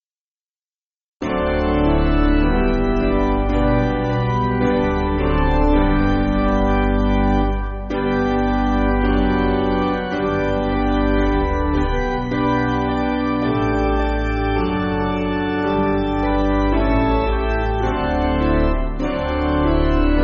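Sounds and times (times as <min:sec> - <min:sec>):
piano: 0:01.2 - 0:20.2.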